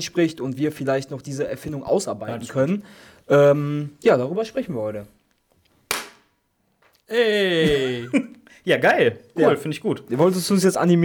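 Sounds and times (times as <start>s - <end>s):
speech: 0.0s - 5.2s, 7.1s - 11.0s
single hand clap for track sync: 5.9s - 6.3s
laughter: 7.2s - 8.4s.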